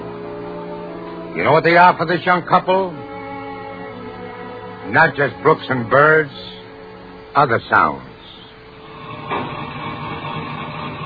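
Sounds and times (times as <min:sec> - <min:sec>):
speech: 0:01.4 - 0:03.1, 0:04.9 - 0:06.5, 0:07.4 - 0:08.1
tractor engine rumbling while clearing land: 0:08.8 - 0:11.0
mechanical clank: 0:09.2 - 0:11.0.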